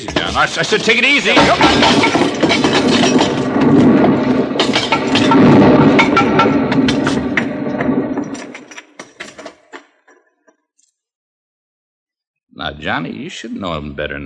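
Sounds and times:
speech: 0:00.0 - 0:03.0, 0:12.6 - 0:14.2
rock pile collapsing after pick strike: 0:00.0 - 0:09.7.

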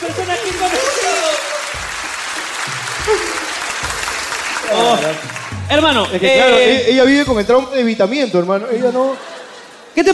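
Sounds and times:
laughter: 0:00.0 - 0:05.2, 0:08.5 - 0:10.1
audience applause: 0:00.0 - 0:06.4
speech: 0:04.8 - 0:09.3, 0:10.0 - 0:10.1.

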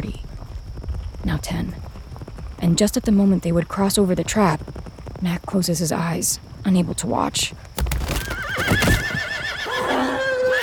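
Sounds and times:
speech: 0:01.2 - 0:01.9, 0:02.6 - 0:07.7
horses whinnying while falling into a trench: 0:07.9 - 0:10.6.

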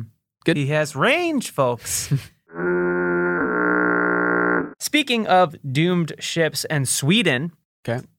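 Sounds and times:
speech: 0:00.5 - 0:02.8, 0:04.9 - 0:08.1
burp imitating a foghorn: 0:02.5 - 0:04.7.

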